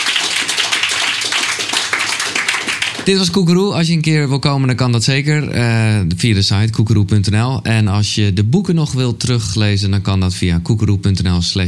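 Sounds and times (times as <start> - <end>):
audience applause for a guest at a live show: 0.0 - 3.2
speech: 3.1 - 11.6.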